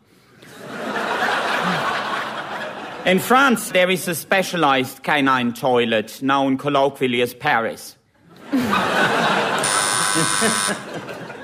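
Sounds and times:
audience laughing: 0:00.5 - 0:03.7, 0:08.3 - 0:11.4
speech: 0:03.1 - 0:09.2, 0:10.2 - 0:11.1
harsh electronic quiz buzzer: 0:09.6 - 0:10.9.

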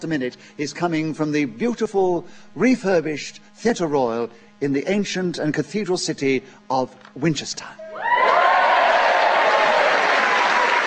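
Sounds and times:
speech: 0:00.0 - 0:07.8
audience applause: 0:08.0 - 0:10.8.

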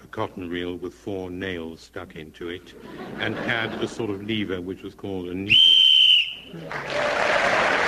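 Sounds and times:
speech: 0:00.1 - 0:05.8, 0:06.5 - 0:07.7
laughter: 0:02.8 - 0:04.3
whistle blown to end a round: 0:05.5 - 0:06.5.

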